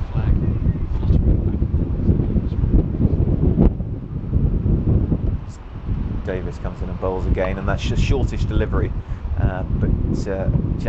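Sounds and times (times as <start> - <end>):
strong wind at a cricket ground buffeting the microphone: 0.0 - 10.8
speech: 6.3 - 10.8.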